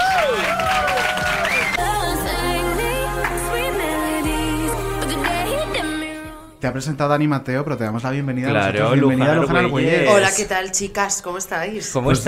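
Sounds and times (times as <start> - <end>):
audience applause and cheering: 0.0 - 5.8
speech: 6.6 - 12.2.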